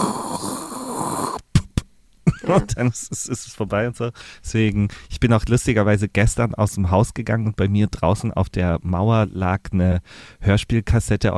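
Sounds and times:
voice imitating cassette tape side running out: 0.0 - 3.4
speech: 2.5 - 11.3.

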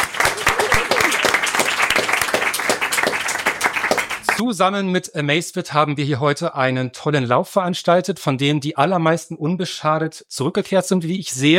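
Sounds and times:
audience clapping: 0.0 - 4.4
speech: 4.4 - 11.5.

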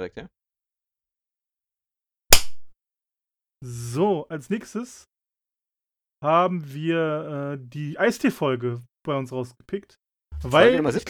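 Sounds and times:
speech: 0.0 - 0.4, 3.6 - 5.1, 6.2 - 11.0
hand clap to mark an edit point: 2.3 - 2.7.

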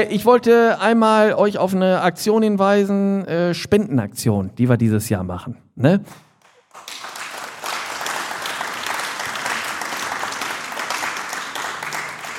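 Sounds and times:
speech: 0.0 - 6.2
audience clapping: 6.3 - 12.3.

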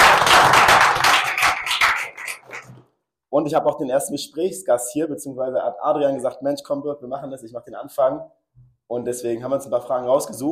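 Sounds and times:
audience applause: 0.0 - 2.7
speech: 3.4 - 10.5.

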